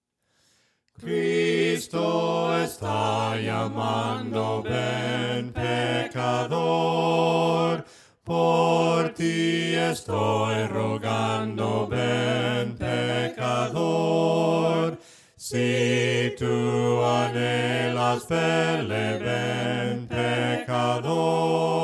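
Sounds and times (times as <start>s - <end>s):
voices singing hymns a cappella: 1.0s - 21.8s.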